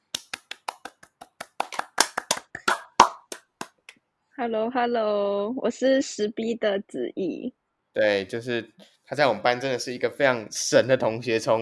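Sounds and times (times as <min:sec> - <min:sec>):
applause: 0:00.0 - 0:03.9
speech: 0:04.4 - 0:11.6.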